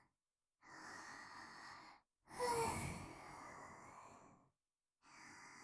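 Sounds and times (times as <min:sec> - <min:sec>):
sleeping breaths: 0:00.9 - 0:04.0.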